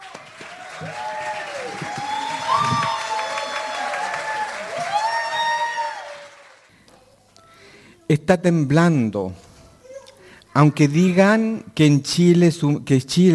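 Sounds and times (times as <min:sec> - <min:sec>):
audience applause: 0:00.0 - 0:06.7
speech: 0:08.1 - 0:09.4, 0:10.6 - 0:13.3.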